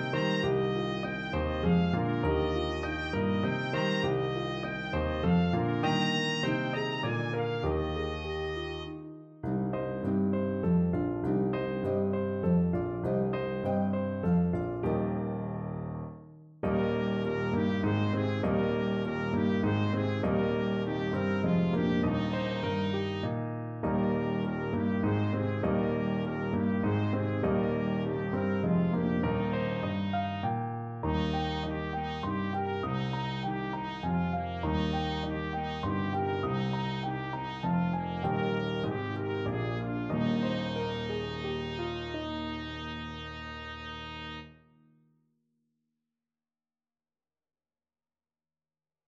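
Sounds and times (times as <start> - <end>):
B-flat trumpet: 0.0 - 9.2, 16.6 - 44.7
piano: 0.0 - 45.0.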